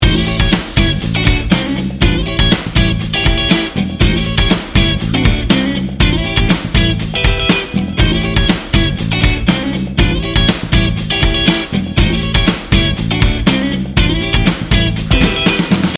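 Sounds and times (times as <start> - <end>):
funky and fun music loop: 0.0 - 15.9.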